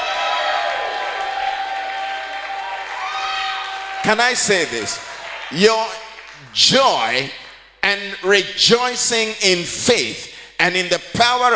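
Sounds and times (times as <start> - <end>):
audience clapping and shouting: 0.0 - 7.8
speech: 4.0 - 11.5.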